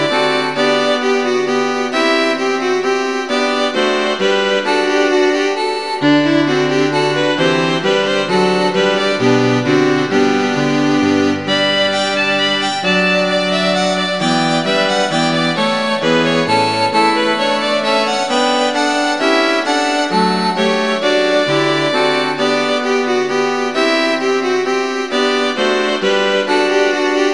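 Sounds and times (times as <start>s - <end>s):
string quartet playing in G major: 0.0s - 27.3s.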